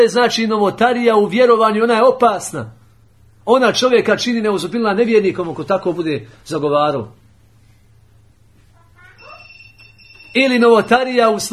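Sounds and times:
speech: 0:00.0 - 0:02.8, 0:03.4 - 0:07.2, 0:10.3 - 0:11.5
incoming call telephone ring: 0:09.0 - 0:11.5.

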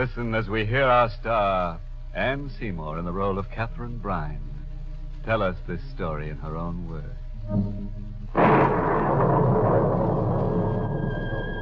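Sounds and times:
speech: 0:00.0 - 0:04.5, 0:05.2 - 0:10.0
thunderclap sound effect: 0:08.3 - 0:11.6.

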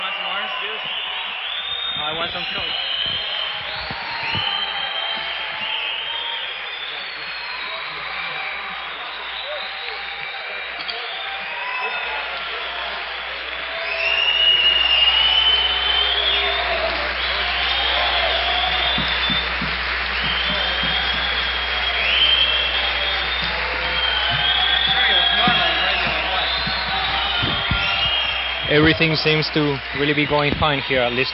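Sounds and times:
concert crowd clapping and cheering for an encore: 0:00.0 - 0:31.3
shrill whistles and whoops: 0:00.0 - 0:31.3
speech: 0:02.2 - 0:03.3, 0:29.0 - 0:31.3.

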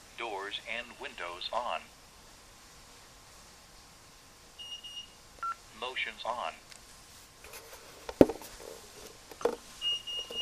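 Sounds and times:
faint hiss: 0:00.0 - 0:10.4
speech: 0:00.2 - 0:02.0, 0:05.8 - 0:06.7
home security system arming beeps: 0:04.6 - 0:05.6, 0:09.8 - 0:10.4
keypad dialing beeps: 0:09.8 - 0:10.4.

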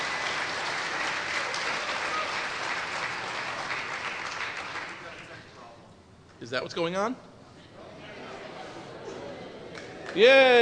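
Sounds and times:
audience applause welcoming a speaker: 0:00.0 - 0:05.4
speech: 0:06.4 - 0:07.3, 0:10.2 - 0:10.6.

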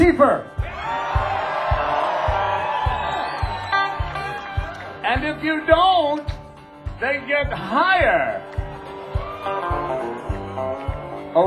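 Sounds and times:
speech: 0:00.1 - 0:00.6, 0:05.2 - 0:06.3, 0:07.0 - 0:08.5
audience applause: 0:00.7 - 0:05.0, 0:08.4 - 0:11.1.

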